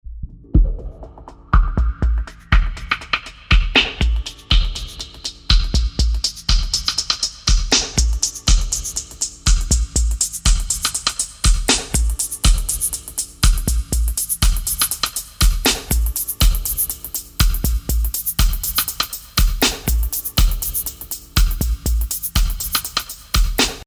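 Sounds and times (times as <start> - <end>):
filtered ragga music: 0.3 - 23.8.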